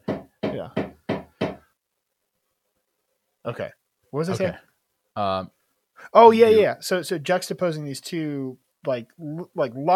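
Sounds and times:
hammering a nail into a stud: 0.0s - 1.6s
speech: 0.6s - 0.8s, 3.4s - 9.9s.

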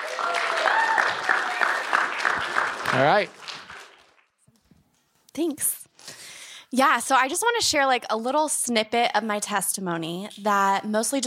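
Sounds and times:
audience clapping: 0.0s - 4.4s
speech: 3.0s - 3.4s, 5.4s - 5.8s, 6.7s - 11.2s.

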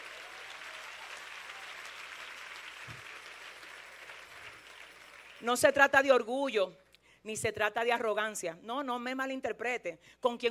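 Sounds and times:
audience applause: 0.0s - 5.4s
speech: 5.4s - 10.4s.

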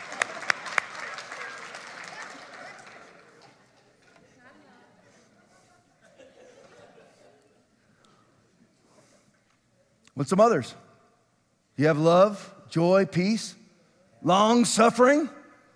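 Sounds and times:
audience clapping: 0.0s - 3.9s
laughter: 2.2s - 7.9s
speech: 10.2s - 10.8s, 11.8s - 13.6s, 14.2s - 15.4s.

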